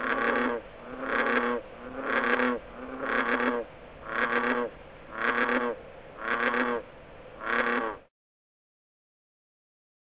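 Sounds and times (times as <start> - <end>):
mating call: 0.0 - 6.8, 7.4 - 8.1.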